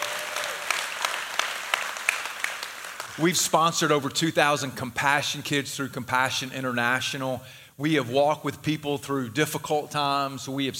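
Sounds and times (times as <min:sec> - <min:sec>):
church congregation clapping during a service: 0:00.0 - 0:03.6
speech: 0:03.2 - 0:10.7.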